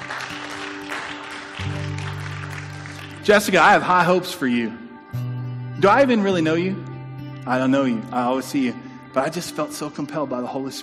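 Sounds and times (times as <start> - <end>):
large crowd applause: 0.0 - 3.5
low sustained musical tone: 2.0 - 10.8
speech: 3.2 - 4.8, 5.8 - 10.8.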